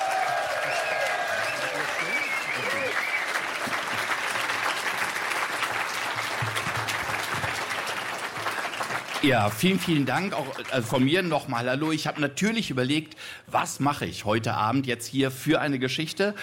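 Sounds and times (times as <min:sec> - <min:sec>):
audience applause: 0:00.0 - 0:12.0
speech: 0:09.2 - 0:16.4.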